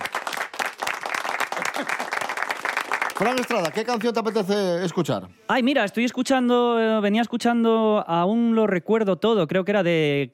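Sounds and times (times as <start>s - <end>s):
applause: 0.0s - 4.6s
speech: 1.8s - 2.0s, 3.2s - 10.3s.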